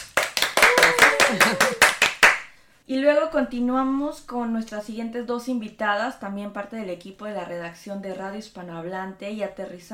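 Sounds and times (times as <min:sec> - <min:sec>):
applause: 0:00.0 - 0:02.5
speech: 0:02.9 - 0:09.9.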